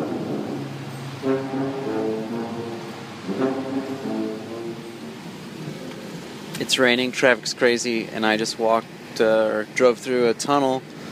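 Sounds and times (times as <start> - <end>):
tuba playing in a tunnel: 0.0 - 5.9
speech: 6.6 - 10.9.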